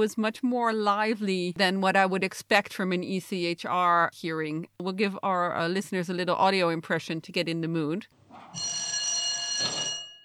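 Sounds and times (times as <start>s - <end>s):
speech: 0.0s - 9.0s
court bell rung before hearing: 8.6s - 10.2s.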